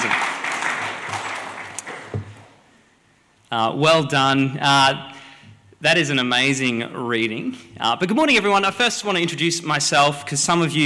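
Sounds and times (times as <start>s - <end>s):
round of applause: 0.0s - 2.6s
speech: 3.5s - 5.1s, 5.8s - 10.8s.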